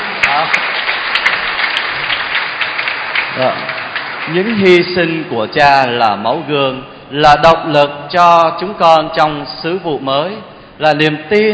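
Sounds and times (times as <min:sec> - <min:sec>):
audience applause: 0:00.0 - 0:05.4
speech: 0:03.4 - 0:11.5.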